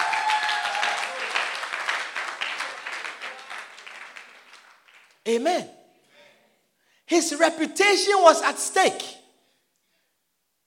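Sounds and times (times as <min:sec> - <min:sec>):
audience clapping: 0:00.0 - 0:05.3
speech: 0:05.3 - 0:05.8, 0:07.1 - 0:09.2.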